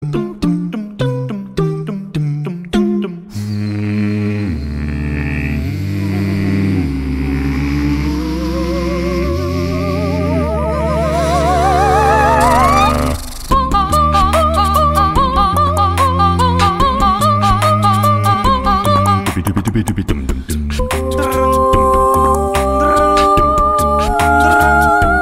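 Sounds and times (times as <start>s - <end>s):
a cappella theme singing: 0.0s - 25.2s.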